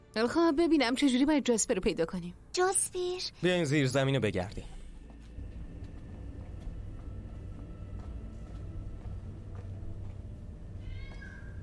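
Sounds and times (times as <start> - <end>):
speech: 0.2 - 4.8
steady low hum: 4.6 - 11.6
cat meowing: 10.8 - 11.6.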